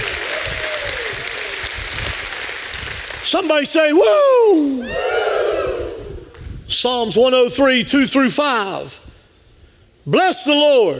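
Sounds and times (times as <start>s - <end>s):
audience hand clapping: 0.0s - 6.5s
speech: 3.3s - 5.4s, 6.7s - 9.1s, 10.1s - 10.9s.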